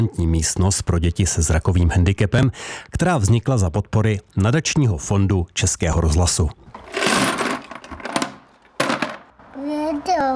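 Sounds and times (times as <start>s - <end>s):
speech: 0.0s - 7.2s
colourful plastic toy cars poured into a glowing box: 6.8s - 9.3s.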